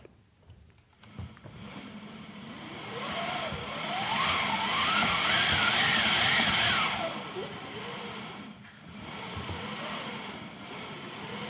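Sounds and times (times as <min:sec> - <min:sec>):
theatre wind machine howling: 0:02.6 - 0:11.4.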